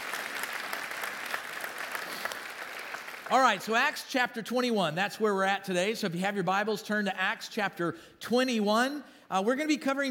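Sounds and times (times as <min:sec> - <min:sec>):
audience applause: 0:00.0 - 0:03.6
speech: 0:03.3 - 0:10.0.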